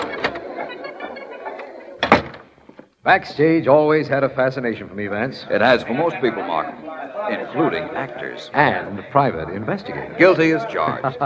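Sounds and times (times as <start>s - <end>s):
door being opened: 0.0s - 0.8s, 1.6s - 2.9s
laughter: 0.0s - 2.1s, 4.3s - 11.2s
speech: 3.1s - 11.2s.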